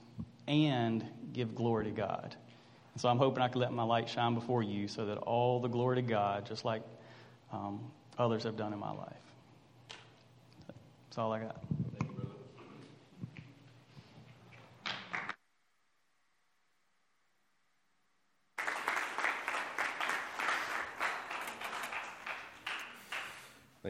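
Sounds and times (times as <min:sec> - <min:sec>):
speech: 0:00.5 - 0:09.3, 0:11.2 - 0:11.8
audience applause: 0:18.6 - 0:23.6.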